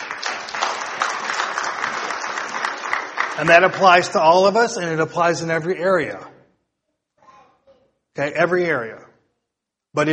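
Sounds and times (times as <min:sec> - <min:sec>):
audience applause: 0:00.0 - 0:04.8
speech: 0:03.4 - 0:06.3, 0:08.2 - 0:09.1, 0:10.0 - 0:10.1.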